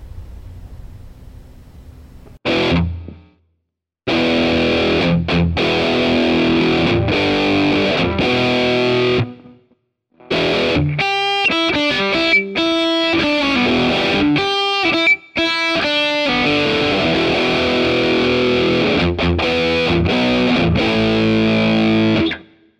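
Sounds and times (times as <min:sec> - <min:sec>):
distorted rhythm guitar through Marshall JCM200 simulation and 4x12 Greenback cabinet: 0:02.4 - 0:03.3, 0:04.1 - 0:09.6, 0:10.2 - 0:22.6.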